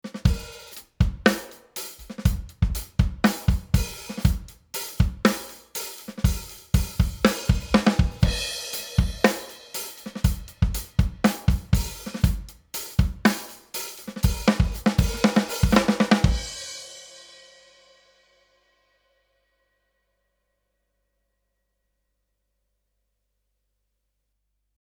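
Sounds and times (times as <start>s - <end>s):
compressed drums: 0.1s - 16.7s.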